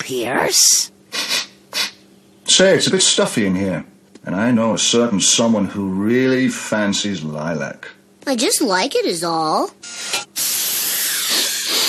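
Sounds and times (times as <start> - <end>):
speech: 0.1 - 0.9, 2.5 - 10.2
aerosol air freshener spraying: 10.3 - 11.8.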